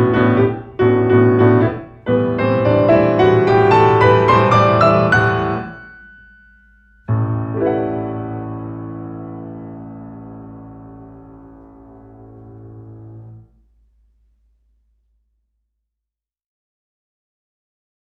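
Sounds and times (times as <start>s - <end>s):
solo piano: 0.0s - 13.6s.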